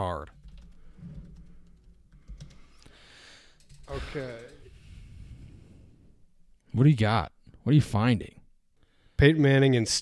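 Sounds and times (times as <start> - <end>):
soft typing on a computer keyboard: 0.4 - 2.9, 3.5 - 4.7
speech: 4.0 - 4.5, 6.8 - 8.4, 9.2 - 9.9.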